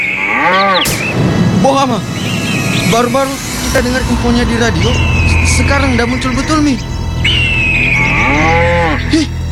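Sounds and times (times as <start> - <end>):
cow mooing: 0.2 - 0.9, 8.0 - 9.1
speech: 1.7 - 2.1, 2.9 - 7.3, 8.3 - 9.3.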